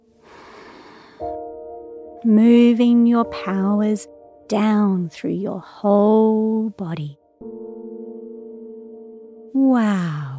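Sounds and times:
deep breath in: 0.2 - 1.4
speech: 2.2 - 7.2, 9.5 - 10.3.

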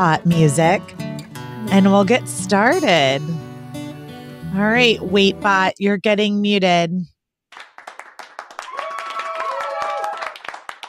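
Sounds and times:
speech: 0.0 - 1.1, 1.7 - 3.5, 4.5 - 7.1
applause sound effect: 7.5 - 10.8.

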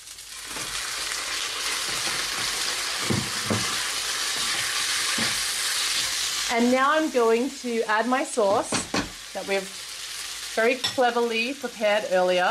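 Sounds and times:
rice frying in a hot pan: 0.0 - 12.5
utensil stirring and scraping pan: 1.7 - 6.2
speech: 6.5 - 8.8, 9.4 - 9.8, 10.6 - 12.5.

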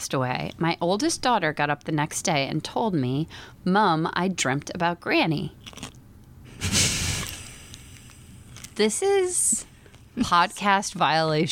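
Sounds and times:
speech: 0.0 - 6.0, 8.8 - 11.4
chewing popcorn into the microphone: 5.6 - 6.0, 7.3 - 8.8.

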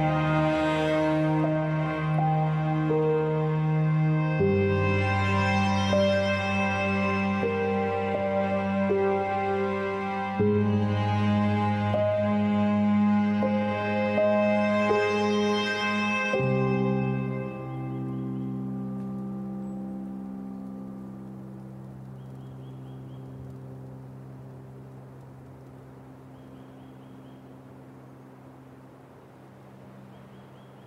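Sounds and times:
string music playing slow sustained chords: 0.0 - 30.8.

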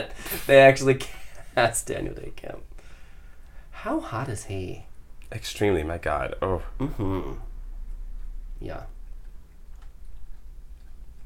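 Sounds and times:
speech: 0.0 - 2.7, 3.8 - 7.5, 8.6 - 9.0
cat chewing food: 7.8 - 11.2.

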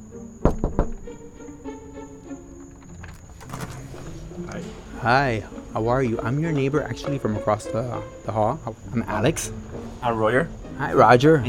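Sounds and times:
knocking on a door: 0.4 - 1.3
shuffling movement: 2.0 - 7.2
speech: 5.0 - 11.4.

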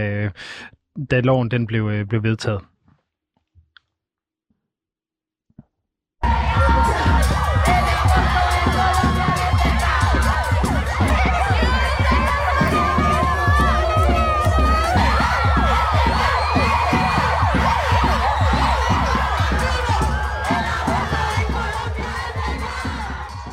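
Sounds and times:
speech: 0.0 - 2.7
crowd celebrating in the streets of Bogotá: 6.2 - 23.5.

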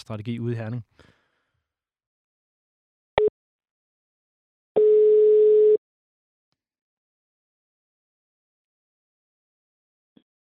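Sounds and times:
speech: 0.0 - 1.2
telephone call ringing tone: 4.8 - 5.8.

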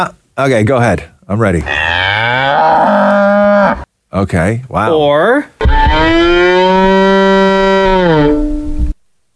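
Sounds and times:
speech: 0.0 - 3.0, 3.7 - 6.6
bowed violin mimicking a cow's moo: 5.6 - 8.7.

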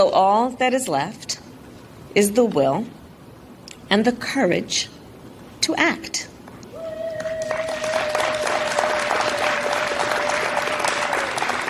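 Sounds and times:
speech: 0.0 - 1.3, 2.1 - 3.0, 3.9 - 5.0, 5.6 - 6.3
woman's long high-pitched sustained cheer: 6.7 - 11.3
crowd applause: 6.8 - 11.6.

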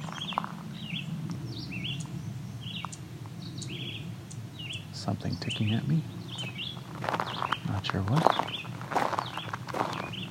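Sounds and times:
warbler resembling a yellowthroat chirping: 0.0 - 10.2
speech: 5.0 - 6.2, 7.8 - 8.6
soft footsteps: 6.4 - 10.2.

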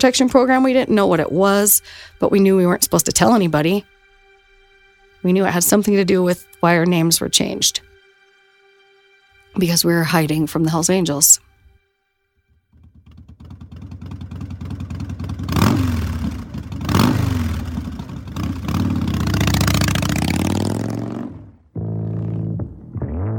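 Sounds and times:
speech: 0.0 - 3.9, 5.2 - 7.9, 9.6 - 11.5
motorcycle engine revving: 12.7 - 23.3.

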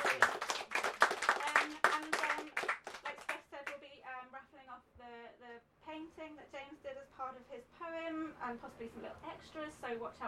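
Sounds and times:
audience clapping: 0.0 - 3.8
speech: 8.4 - 10.2.

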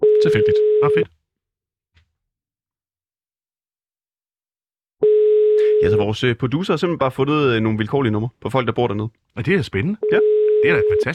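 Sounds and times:
telephone call tone: 0.0 - 1.1, 5.0 - 6.1, 10.0 - 11.1
speech: 0.2 - 1.2, 5.8 - 11.1.

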